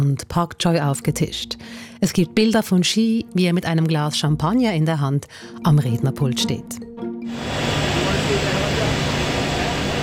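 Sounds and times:
speech: 0:00.0 - 0:07.7
helicopter engine: 0:07.3 - 0:10.0.

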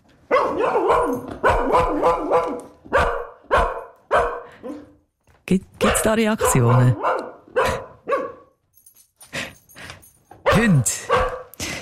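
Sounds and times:
dog barking: 0:00.3 - 0:05.0, 0:05.8 - 0:08.6, 0:10.4 - 0:11.6
speech: 0:05.5 - 0:07.1, 0:10.6 - 0:10.9.

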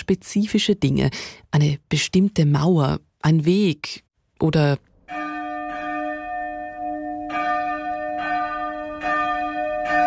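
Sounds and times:
speech: 0:00.1 - 0:05.2
church bells ringing: 0:05.1 - 0:10.0.

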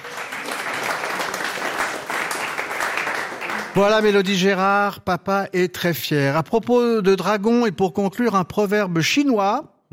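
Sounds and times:
audience applause: 0:00.0 - 0:04.4
speech: 0:03.8 - 0:09.9.

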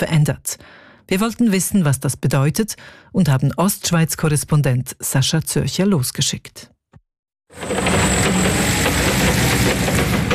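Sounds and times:
speech: 0:00.0 - 0:06.7
forklift engine running while carrying crates of freshly picked apples: 0:07.5 - 0:10.3.

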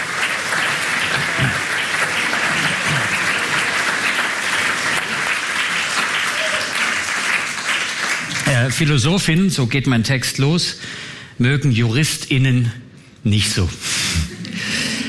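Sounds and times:
audience applause: 0:00.0 - 0:09.0
speech: 0:08.7 - 0:13.9.

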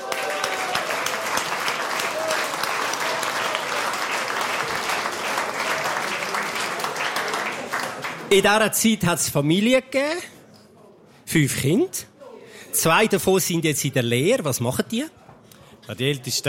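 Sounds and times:
audience applause: 0:00.0 - 0:08.4
speech: 0:08.3 - 0:10.4, 0:11.3 - 0:12.1, 0:12.8 - 0:15.2, 0:15.9 - 0:16.4.

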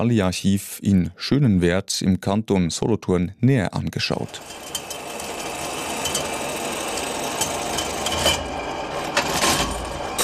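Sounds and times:
speech: 0:00.0 - 0:04.8
125-year-old leather-area measuring machine in the Bally shoe archive in Schönenwerd: 0:04.2 - 0:10.2.

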